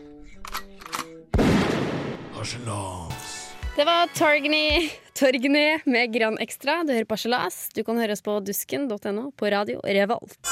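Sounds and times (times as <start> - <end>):
shotgun blast: 1.3 - 2.4
speech: 2.4 - 3.2, 3.8 - 10.5.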